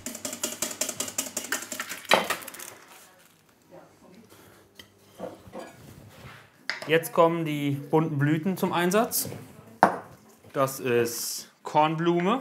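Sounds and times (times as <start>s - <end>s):
whisking hollandaise sauce in a bowl: 0.0s - 1.9s
speech: 6.9s - 9.5s, 10.6s - 12.3s.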